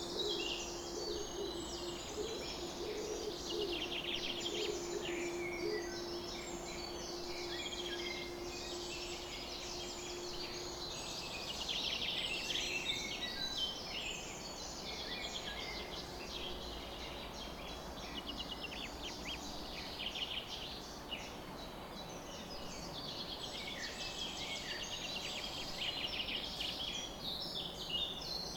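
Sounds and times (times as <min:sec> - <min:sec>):
constant low humming tone: 0:00.0 - 0:12.4
birds chorusing at dawn: 0:00.0 - 0:28.5.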